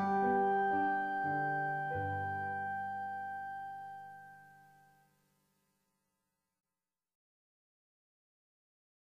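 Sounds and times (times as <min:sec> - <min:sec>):
instrumental music: 0:00.0 - 0:05.1.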